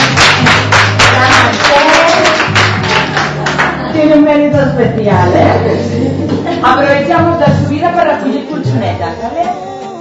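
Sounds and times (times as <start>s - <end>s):
group applause: 0.0s - 4.0s
speech: 4.0s - 9.6s.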